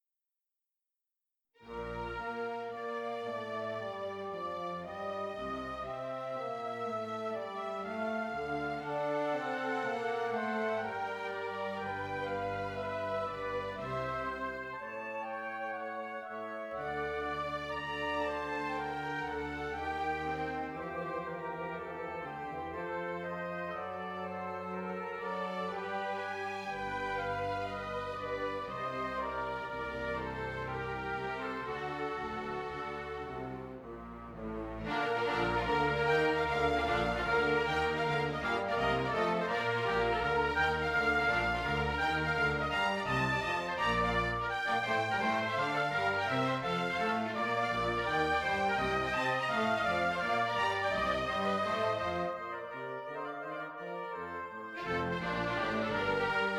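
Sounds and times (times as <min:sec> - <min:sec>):
andante for two violins and cello, orchestrated: 0:01.7 - 0:56.5.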